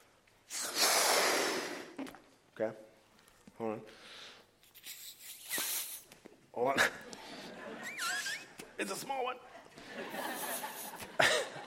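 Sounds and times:
breath blowing into a balloon: 0.5 - 2.1, 4.1 - 6.1
speech: 2.0 - 2.9, 3.6 - 4.2, 6.6 - 7.1, 8.8 - 10.7
laughter: 7.0 - 8.6, 9.5 - 11.6.

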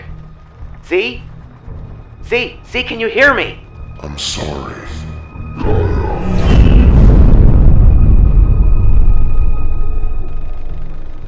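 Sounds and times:
crackling embers: 0.0 - 11.2
roaring fire: 0.0 - 11.2
speech: 0.9 - 1.3, 2.2 - 5.0.

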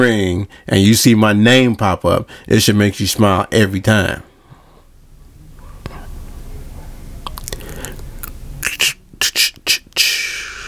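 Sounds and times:
speech: 0.0 - 4.3
person imitating cricket chirping with mouth noises: 8.6 - 10.6.

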